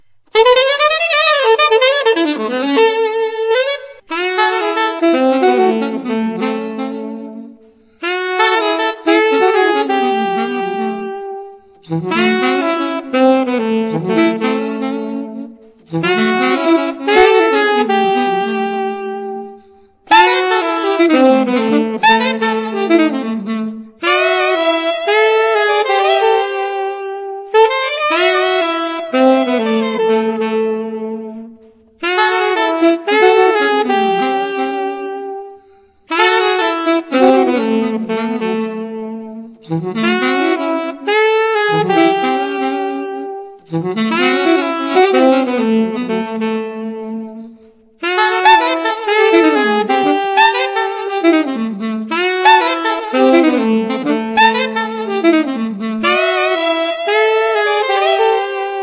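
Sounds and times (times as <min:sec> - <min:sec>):
saxophone: 0:00.0 - 0:58.8.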